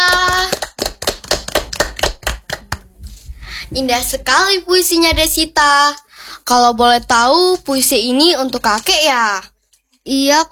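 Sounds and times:
applause: 0.0s - 2.8s
speech: 3.7s - 10.5s.

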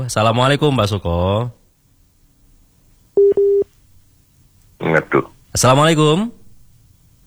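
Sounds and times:
speech: 0.0s - 1.6s, 4.8s - 6.4s
WhatsApp call connecting tone beeps: 3.2s - 3.7s.

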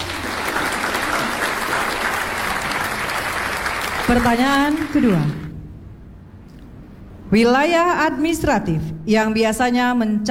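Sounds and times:
applause: 0.0s - 5.5s
speech: 4.1s - 5.4s, 7.3s - 10.2s.

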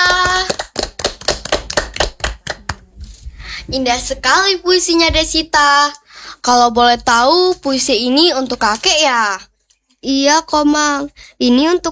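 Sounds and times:
audience clapping: 0.0s - 3.3s
speech: 3.7s - 11.9s.

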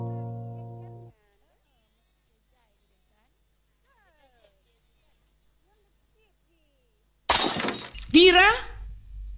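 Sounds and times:
glass breaking: 7.3s - 8.7s.

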